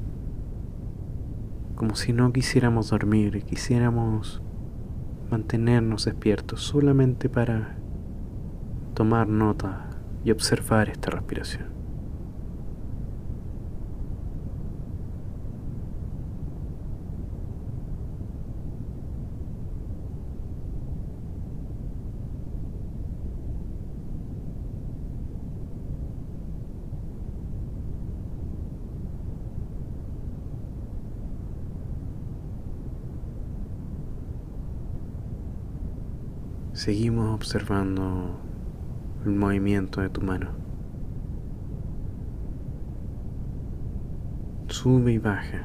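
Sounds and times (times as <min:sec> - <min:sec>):
brown noise: 0:00.0 - 0:45.6
speech: 0:01.8 - 0:04.5, 0:05.3 - 0:07.8, 0:09.0 - 0:11.8, 0:36.8 - 0:38.5, 0:39.2 - 0:40.6, 0:44.8 - 0:45.6.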